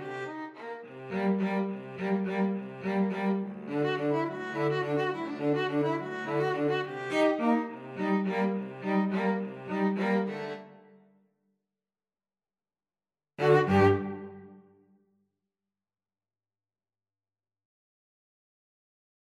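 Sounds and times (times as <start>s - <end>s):
two violins: 0.0s - 10.8s, 13.4s - 14.6s
cello: 0.0s - 11.0s, 13.4s - 14.7s.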